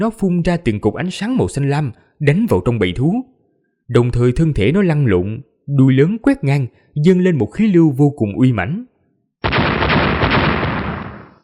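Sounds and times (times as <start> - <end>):
speech: 0.0 - 3.3, 3.9 - 8.9
crackling rumble: 9.4 - 11.4
series of explosions as an audiobook sound effect: 9.4 - 11.4.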